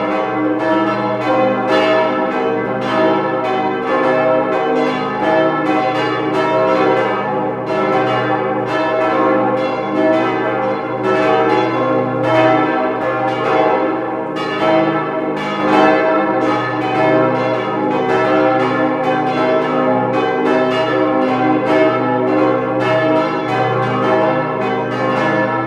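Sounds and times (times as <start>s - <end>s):
bells: 0.0s - 25.6s.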